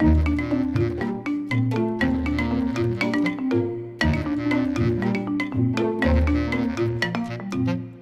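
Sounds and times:
classic xylophone: 0.0s - 7.9s.

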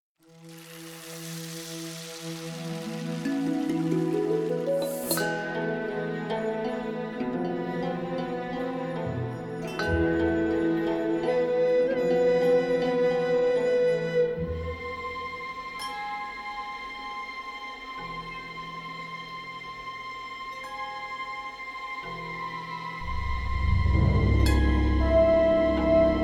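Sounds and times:
music stem: 2.8s - 13.7s, 23.0s - 26.2s.

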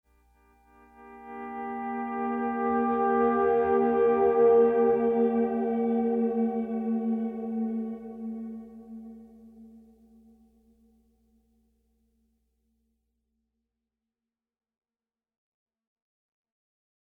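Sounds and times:
pleasant guitar playing: 0.7s - 9.6s.

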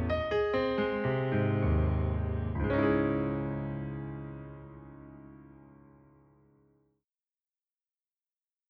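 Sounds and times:
instrumental music: 0.0s - 6.6s.

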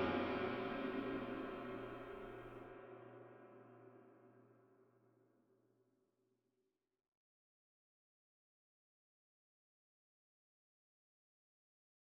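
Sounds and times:
orchestral music: 0.0s - 2.2s.

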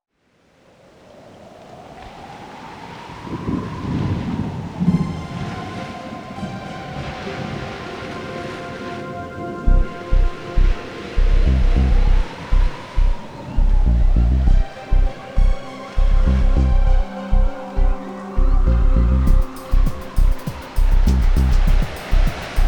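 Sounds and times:
rain: 0.1s - 22.6s
surf: 1.4s - 22.6s.

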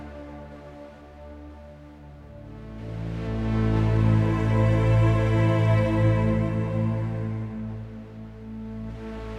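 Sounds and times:
string loop: 2.8s - 9.1s.

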